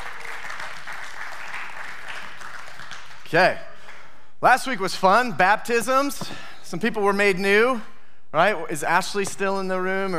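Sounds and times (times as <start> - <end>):
audience cheering and applauding: 0.0 - 3.3
speech: 3.3 - 3.7, 4.4 - 10.1.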